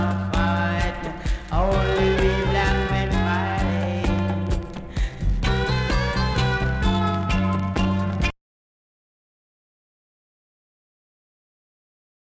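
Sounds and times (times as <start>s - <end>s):
reggae music: 0.0s - 8.3s.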